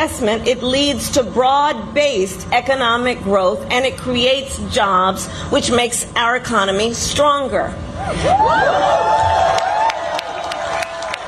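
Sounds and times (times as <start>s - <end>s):
speech: 0.0s - 9.7s
crowd cheering: 8.2s - 11.2s.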